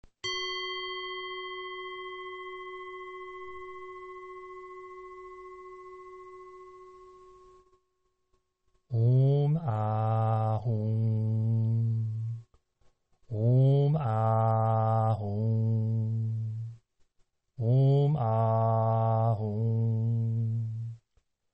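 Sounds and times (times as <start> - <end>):
person chanting a mantra: 8.9 - 12.5, 13.3 - 16.8, 17.6 - 21.0.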